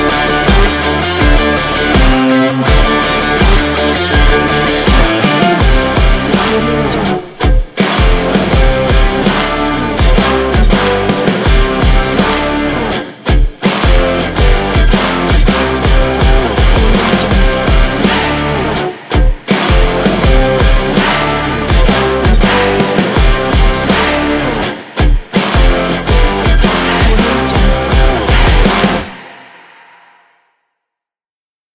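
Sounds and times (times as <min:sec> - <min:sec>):
hard rock music: 0:00.0 - 0:30.2.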